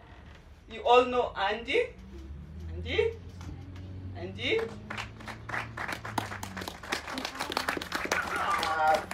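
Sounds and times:
speech: 0.9s - 2.0s, 2.8s - 3.2s
audience clapping at a launch event: 4.4s - 9.1s.

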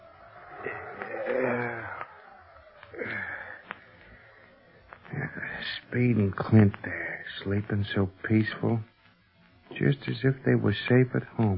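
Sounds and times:
howling wind: 0.0s - 4.9s
speech: 5.8s - 8.9s, 9.8s - 11.5s.

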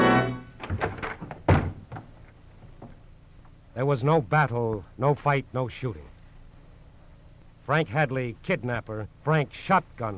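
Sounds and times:
short sustained tone: 0.0s - 0.6s
wooden door forced open with thunks, rattles and bang: 0.1s - 2.1s
speech: 3.8s - 6.1s, 7.7s - 10.1s.

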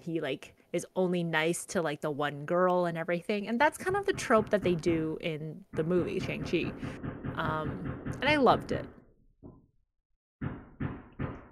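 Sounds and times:
speech: 0.0s - 9.0s
hammering: 3.8s - 9.0s, 10.4s - 11.4s.

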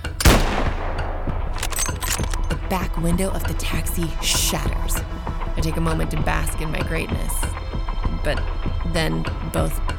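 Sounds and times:
sniper rifle gunshot: 0.1s - 2.4s
speech: 2.7s - 7.6s, 8.2s - 9.9s.

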